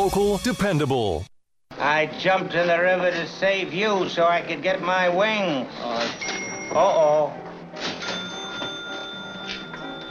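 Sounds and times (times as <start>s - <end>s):
speech: 0.0s - 7.9s
bell ringing: 6.2s - 7.0s, 8.0s - 10.0s.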